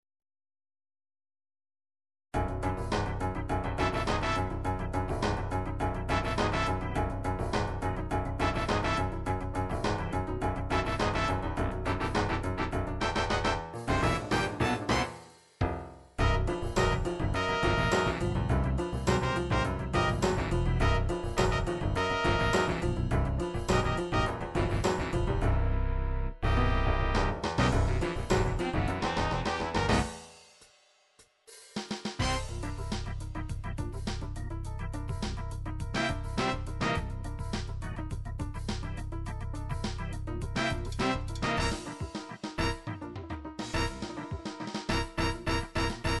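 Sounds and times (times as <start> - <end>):
dance funk MIDI music: 2.4 - 25.8, 26.4 - 30.2, 32.1 - 46.1.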